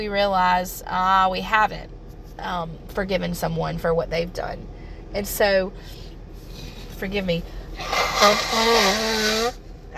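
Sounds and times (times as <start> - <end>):
speech: 0.0 - 6.1, 7.0 - 9.9
person blowing nose: 7.8 - 9.6.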